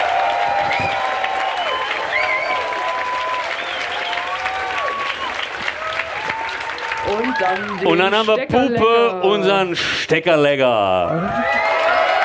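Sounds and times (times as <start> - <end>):
audience applause: 0.0 - 8.3, 11.1 - 12.2
cheering voices: 0.0 - 8.3, 11.1 - 12.2
whistles: 0.6 - 5.5
speech: 7.4 - 11.6.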